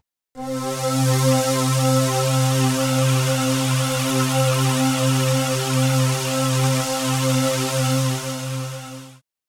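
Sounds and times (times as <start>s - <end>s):
stacked sound samples: 0.4s - 9.2s.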